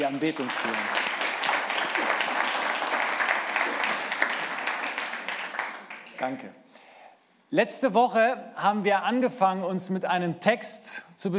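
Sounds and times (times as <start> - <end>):
speech: 0.0 - 1.1, 6.2 - 6.6, 7.5 - 11.3
audience applauding the musicians: 0.0 - 6.5.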